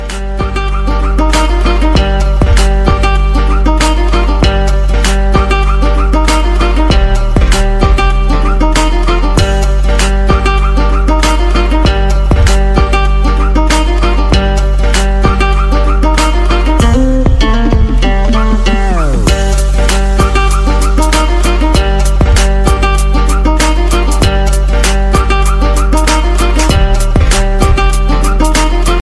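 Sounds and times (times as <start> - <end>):
English remix ringtone music: 0.0 - 29.0.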